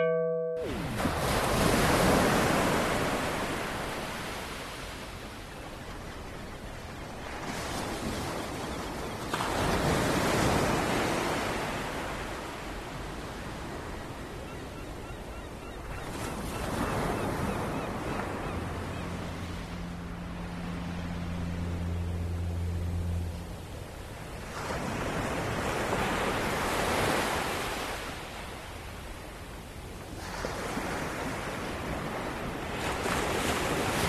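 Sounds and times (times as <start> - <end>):
sea waves on a coast: 0.0 - 34.0
low steady hum: 19.2 - 24.1.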